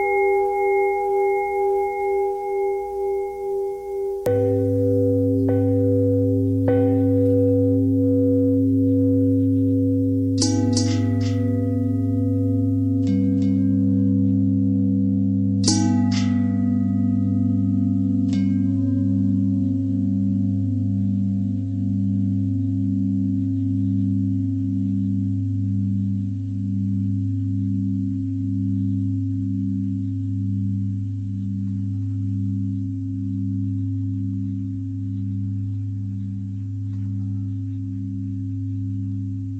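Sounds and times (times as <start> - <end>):
long bending bell tones: 0.0 - 39.5.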